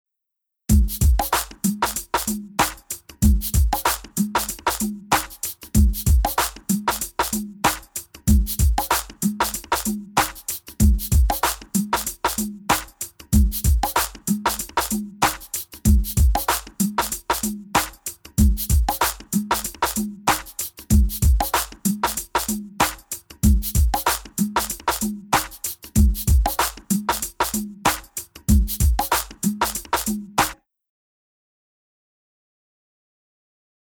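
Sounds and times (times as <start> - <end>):
music: 0.7 - 30.6.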